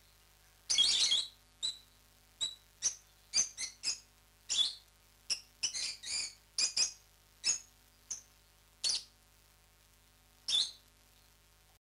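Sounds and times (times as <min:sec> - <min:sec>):
rosy-faced lovebird Agapornis roseicollis chattering: 0:00.7 - 0:01.8, 0:02.4 - 0:08.2.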